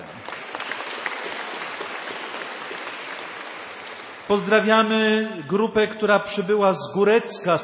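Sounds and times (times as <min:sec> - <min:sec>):
audience applause: 0:00.0 - 0:04.7
speech: 0:04.3 - 0:07.6.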